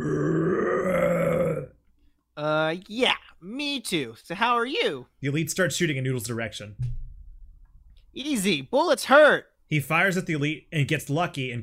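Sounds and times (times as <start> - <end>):
angry monster roar: 0.0 - 1.8
speech: 2.4 - 7.0, 8.2 - 11.6.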